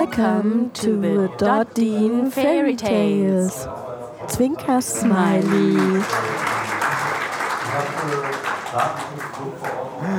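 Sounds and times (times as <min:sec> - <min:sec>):
speech: 0:00.0 - 0:06.6, 0:07.8 - 0:10.1
crowd applause: 0:05.1 - 0:10.1.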